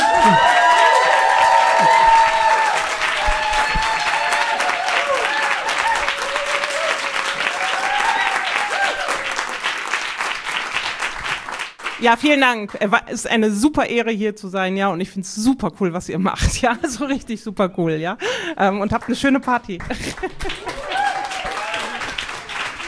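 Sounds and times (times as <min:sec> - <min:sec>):
audience applause: 0:00.0 - 0:12.0, 0:19.9 - 0:22.8
speech: 0:12.0 - 0:20.8.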